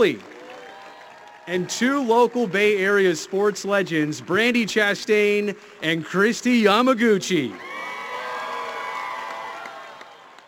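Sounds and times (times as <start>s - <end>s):
speech: 0.0s - 0.3s, 1.5s - 7.7s
crowd cheering and clapping to welcome the PWHL San Jose hockey team: 0.0s - 4.9s, 7.4s - 10.4s.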